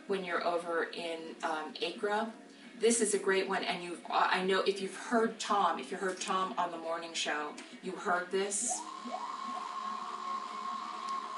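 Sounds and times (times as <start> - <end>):
speech: 0.1 - 9.4
weather-driven analog drone synthesizer: 8.6 - 11.3.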